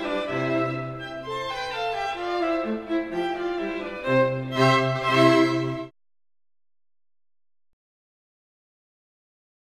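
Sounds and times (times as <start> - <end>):
string quartet playing an allegro: 0.0 - 5.9.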